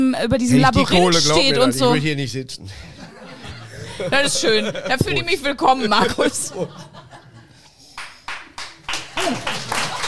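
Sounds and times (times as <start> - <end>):
speech: 0.0 - 3.0, 4.0 - 6.9, 9.2 - 9.7
laughter: 2.6 - 7.9, 9.0 - 10.0
audience applause: 7.9 - 10.0.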